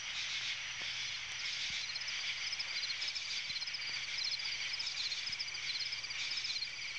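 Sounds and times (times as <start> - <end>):
insects in a swamp: 0.0 - 6.9.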